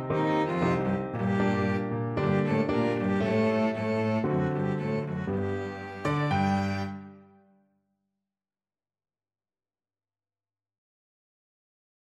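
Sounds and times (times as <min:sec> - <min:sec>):
violin and cello duet: 0:00.0 - 0:07.1.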